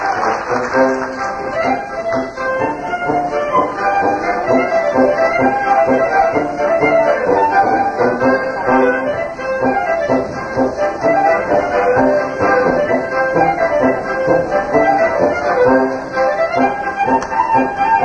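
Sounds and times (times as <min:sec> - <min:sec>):
accordion playing a bergamasco: 0:00.0 - 0:18.0
clarinet playing a bergamasco: 0:00.0 - 0:18.0
tuba playing a bergamasco: 0:00.0 - 0:18.0.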